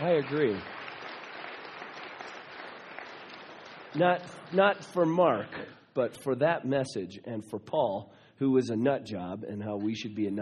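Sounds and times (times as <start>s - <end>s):
speech: 0.0s - 0.8s, 3.9s - 10.3s
applause: 0.0s - 5.8s.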